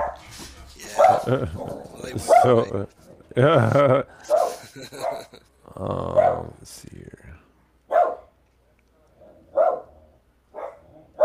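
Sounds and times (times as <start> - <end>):
dogs barking and whimpering: 0.0 - 3.4, 4.2 - 5.4, 6.0 - 6.5, 9.2 - 11.2
laughter: 0.4 - 6.1
speech: 1.0 - 7.1.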